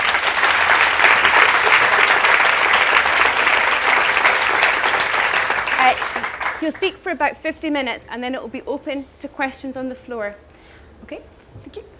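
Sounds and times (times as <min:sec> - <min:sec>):
audience applauding to welcome a guest speaker in Scotland: 0:00.0 - 0:06.8
speech: 0:06.6 - 0:11.9.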